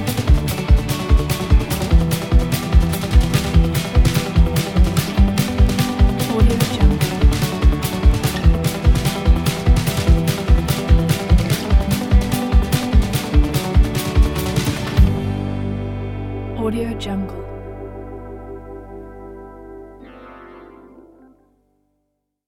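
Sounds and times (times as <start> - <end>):
fast country song: 0.0 - 17.4.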